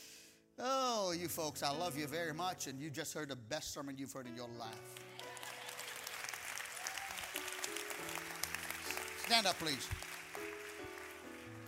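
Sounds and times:
speech: 0.6 - 5.1, 9.3 - 10.5
audience clapping: 4.7 - 11.6.

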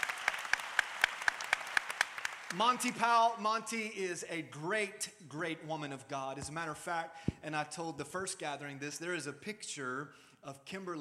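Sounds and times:
audience applause: 0.0 - 3.0
speech: 2.5 - 10.9.

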